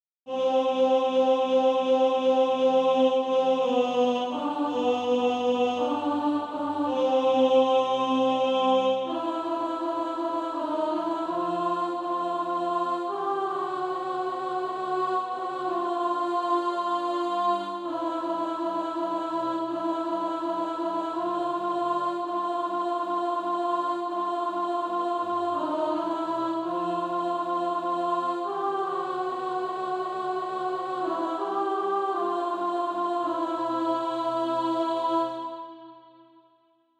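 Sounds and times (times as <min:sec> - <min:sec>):
alto voice singing practice music: 0:00.3 - 0:36.2.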